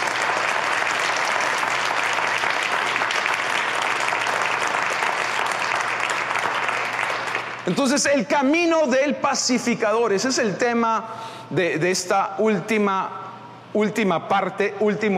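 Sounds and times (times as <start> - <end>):
audience applause: 0.0 - 7.8
speech: 7.7 - 15.1.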